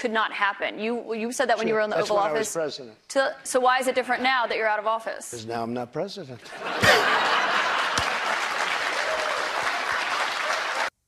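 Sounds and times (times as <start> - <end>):
speech: 0.0 - 7.7
crowd laughter: 6.4 - 8.8
crowd applause: 6.8 - 10.9.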